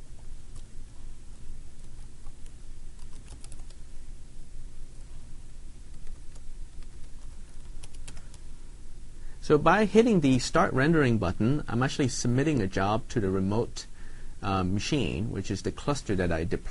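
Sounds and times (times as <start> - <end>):
typing a login and password on a computer keyboard: 3.0 - 3.8, 5.9 - 8.4
speech: 9.5 - 16.7.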